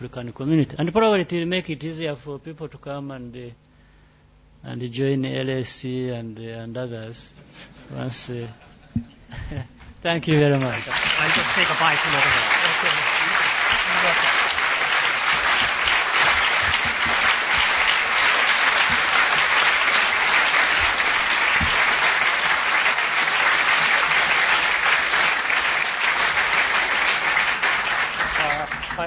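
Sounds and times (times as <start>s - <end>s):
speech: 0.0s - 3.7s, 4.6s - 12.6s
large audience round of applause: 10.5s - 29.0s.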